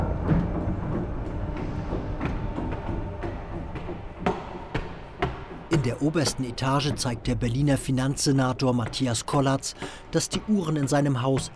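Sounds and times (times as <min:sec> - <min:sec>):
old paternoster lift running with low mechanical rumble: 0:00.0 - 0:07.7
speech: 0:05.7 - 0:11.5.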